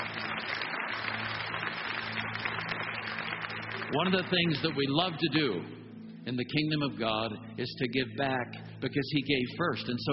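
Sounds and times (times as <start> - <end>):
audience cheering and clapping: 0.0 - 5.1
speech: 3.9 - 10.1.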